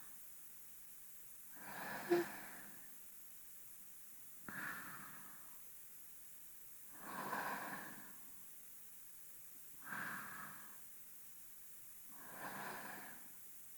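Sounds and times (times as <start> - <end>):
person breathing in sleep, binaural: 1.6 - 2.8, 4.5 - 5.6, 7.0 - 8.2, 9.8 - 10.8, 12.2 - 13.3.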